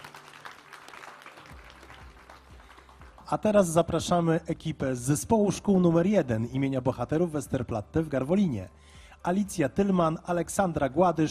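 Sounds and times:
crowd applauding: 0.0 - 3.8
speech: 3.3 - 11.3.

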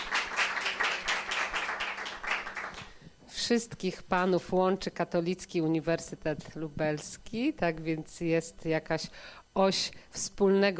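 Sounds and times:
audience applause: 0.0 - 2.9
speech: 3.5 - 10.7.

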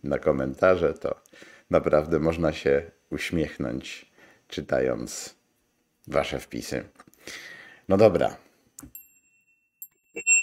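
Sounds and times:
speech: 0.0 - 5.4, 6.1 - 9.0
small bell ringing: 8.9 - 10.4.

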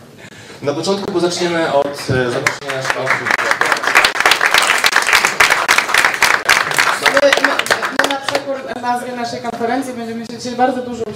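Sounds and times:
speech: 0.6 - 3.5, 8.9 - 11.1
audience applause: 1.9 - 8.6.

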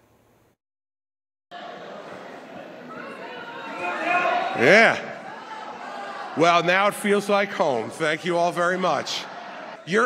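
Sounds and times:
crowd noise: 1.5 - 10.0
audience booing: 3.0 - 10.0
speech: 4.6 - 5.1, 6.4 - 10.0.

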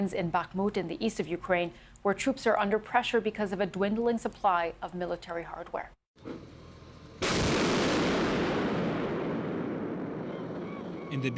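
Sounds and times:
speech: 0.0 - 6.4, 11.1 - 11.3
artillery fire from big Western-supplied guns near Bakhmut, Ukraine: 7.2 - 11.1.

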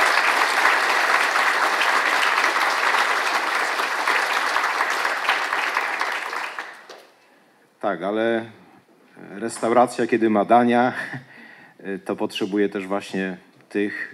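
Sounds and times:
audience applause: 0.0 - 7.1
speech: 7.8 - 8.6, 9.2 - 14.1.

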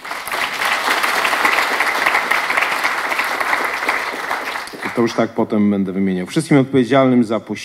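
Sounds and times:
audience applause: 0.0 - 5.3
speech: 5.0 - 7.6.

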